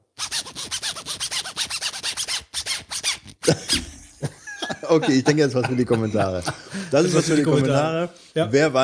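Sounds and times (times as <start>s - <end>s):
zipper played rhythmically like a song: 0.2s - 4.2s
laughter: 3.4s - 8.1s
speech: 4.9s - 8.8s.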